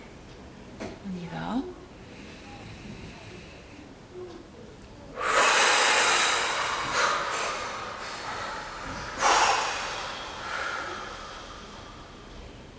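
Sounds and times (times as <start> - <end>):
deep breath out: 2.0 - 3.9, 5.2 - 12.7.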